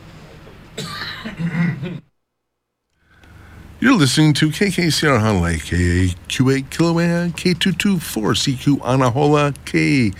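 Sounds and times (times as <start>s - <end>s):
rough cough: 0.8s - 2.1s
speech: 0.8s - 2.1s, 3.8s - 10.1s.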